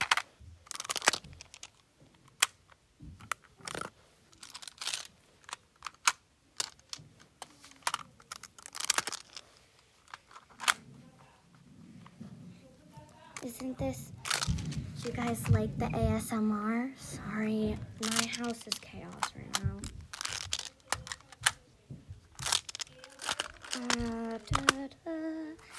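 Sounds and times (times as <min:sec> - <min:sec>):
plastic building shapes clicking and rattling for ASMR: 0:00.0 - 0:10.8, 0:13.4 - 0:15.5, 0:18.0 - 0:21.6, 0:22.3 - 0:24.9, 0:25.6 - 0:25.7
speech: 0:13.6 - 0:14.2, 0:15.0 - 0:19.5.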